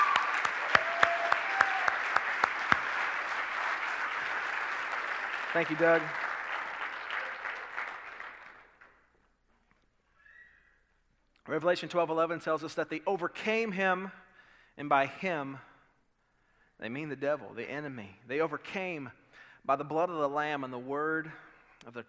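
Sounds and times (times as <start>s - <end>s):
audience applause: 0.0s - 8.8s
speech: 5.5s - 6.2s, 11.6s - 14.2s, 14.8s - 15.7s, 16.8s - 22.0s.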